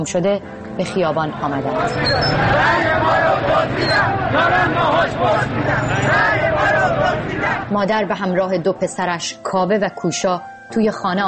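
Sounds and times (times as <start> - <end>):
speech: 0.0 - 11.2
street crowd hubbub and shouting: 1.1 - 7.8.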